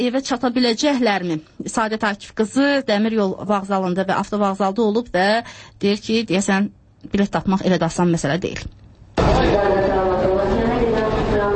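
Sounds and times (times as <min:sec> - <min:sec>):
speech: 0:00.0 - 0:08.8
crowd babble at the entrance of Baku bus station: 0:09.2 - 0:11.5.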